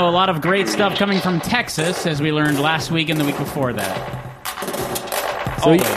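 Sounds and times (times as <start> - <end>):
speech: 0.0 - 4.7, 5.6 - 5.9
8-bit drum module crunchy percussive hits: 0.2 - 5.9.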